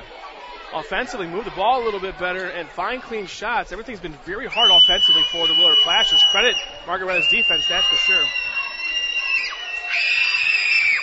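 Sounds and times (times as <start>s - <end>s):
speech: 0.7s - 8.5s
crowd screaming to distract free throw: 4.5s - 11.0s.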